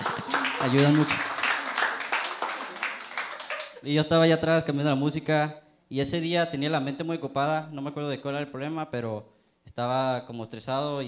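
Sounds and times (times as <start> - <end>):
audience applause: 0.0 - 3.8
laughter: 0.0 - 3.8
speech: 0.6 - 1.2, 3.8 - 11.0.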